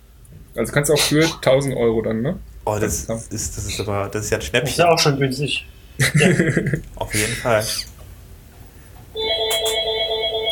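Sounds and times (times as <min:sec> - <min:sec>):
speech: 0:00.6 - 0:07.9
laughter: 0:06.0 - 0:07.8
phone ringing with a bright electronic ringtone: 0:09.2 - 0:10.5.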